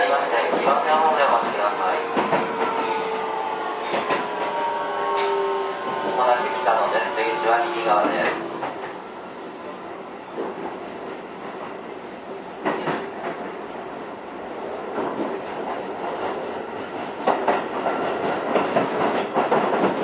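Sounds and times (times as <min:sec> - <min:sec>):
Keio 9000 series train running from Takaosanguchi to Tsutsujigaoka: 0:00.0 - 0:20.0.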